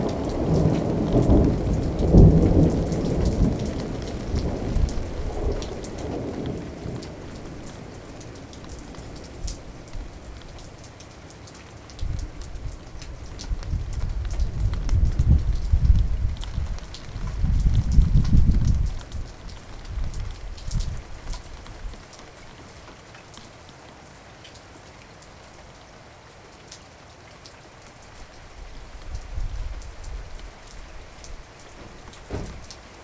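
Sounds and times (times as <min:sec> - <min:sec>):
thunderstorm: 0:00.0 - 0:10.5, 0:12.0 - 0:21.3, 0:31.7 - 0:32.9.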